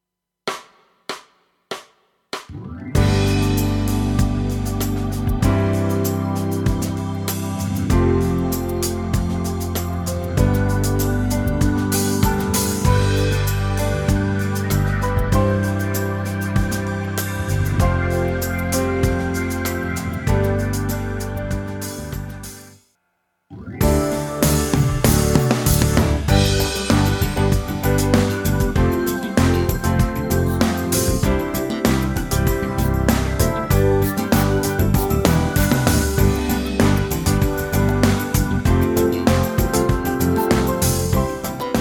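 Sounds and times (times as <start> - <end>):
music: 0.5 - 22.9, 23.5 - 41.7.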